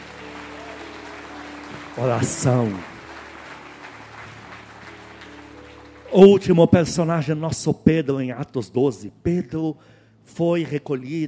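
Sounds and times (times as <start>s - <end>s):
audience applause: 0.0s - 6.9s
speech: 2.0s - 2.9s, 6.2s - 11.2s.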